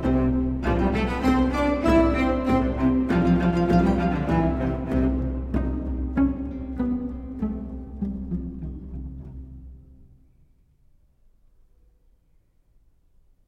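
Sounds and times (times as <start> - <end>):
plucked string orchestra divertimento: 0.0 - 10.3.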